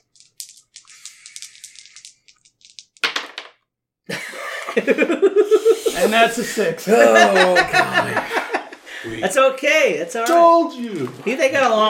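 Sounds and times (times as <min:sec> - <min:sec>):
dice rattling and clattering: 0:00.0 - 0:03.6
laughter: 0:04.1 - 0:09.2
speech: 0:04.8 - 0:08.4, 0:09.0 - 0:11.8.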